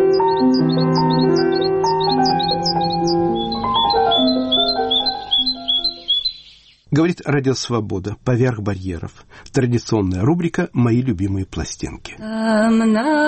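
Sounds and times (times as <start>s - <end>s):
wild birds singing in winter: 0.0s - 6.9s
speech: 7.0s - 13.2s.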